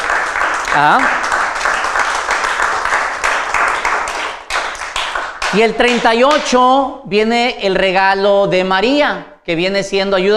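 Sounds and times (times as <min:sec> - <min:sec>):
audience applause: 0:00.0 - 0:06.1
speech: 0:00.7 - 0:01.2, 0:05.5 - 0:10.3.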